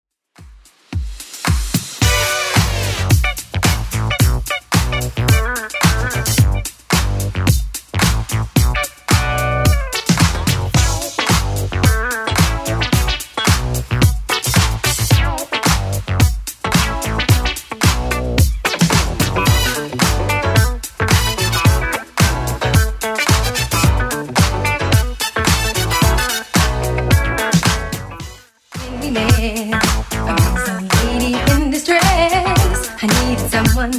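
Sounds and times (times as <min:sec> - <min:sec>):
1980s club music: 0:00.4 - 0:33.9.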